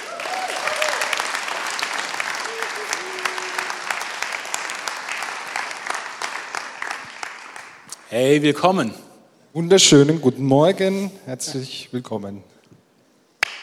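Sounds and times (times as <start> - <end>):
audience applause: 0.0 - 7.9
speech: 8.1 - 12.6.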